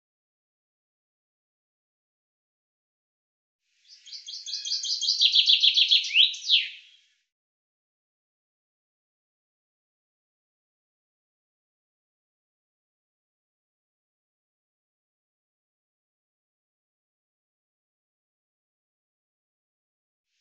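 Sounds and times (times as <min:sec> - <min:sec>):
common chaffinch singing: 0:03.8 - 0:07.0.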